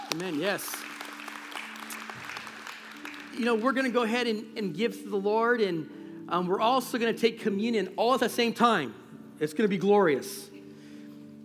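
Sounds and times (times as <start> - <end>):
audience clapping: 0.0 - 4.3
speech: 0.1 - 0.9, 3.4 - 10.5.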